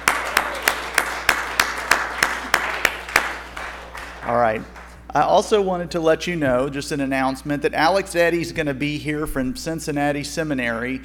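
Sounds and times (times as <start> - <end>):
audience clapping: 0.0 - 5.0
speech: 4.3 - 11.0.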